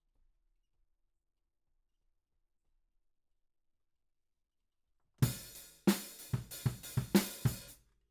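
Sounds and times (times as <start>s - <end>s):
ride cymbal: 5.2s - 7.7s.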